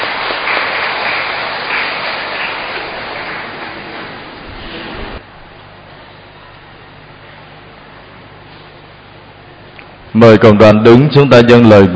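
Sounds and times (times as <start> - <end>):
audience applauding in church: 0.0 - 5.2
speech: 10.2 - 11.9.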